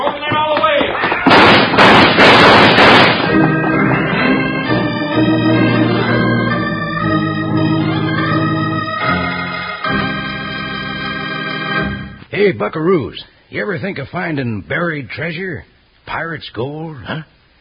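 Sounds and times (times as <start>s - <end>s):
rapid volley of gunshots: 1.1s - 4.4s
sustained orchestral music: 2.8s - 12.3s
speech: 12.5s - 17.4s.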